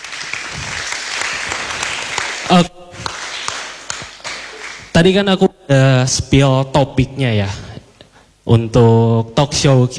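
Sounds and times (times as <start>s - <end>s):
crowd applauding: 0.0s - 5.0s
speech: 2.5s - 2.8s, 5.0s - 7.6s, 8.5s - 9.9s.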